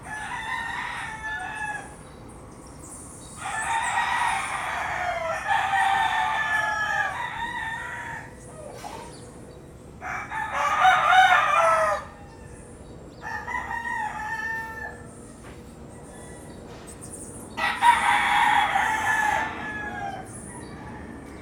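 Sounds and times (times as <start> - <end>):
rooster crowing at dawn in Puerto Rico: 0.0 - 2.0, 3.4 - 8.8, 10.0 - 15.4, 17.6 - 21.4.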